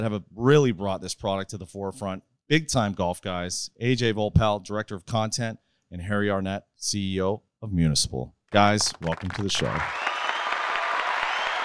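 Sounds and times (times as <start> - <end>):
speech: 0.0 - 10.0
short thin scattered clapping: 8.6 - 11.6.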